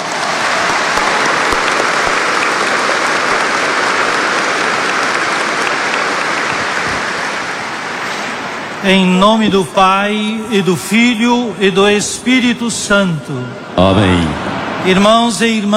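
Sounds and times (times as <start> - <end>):
audience applause: 0.0 - 8.8
speech: 8.8 - 15.7.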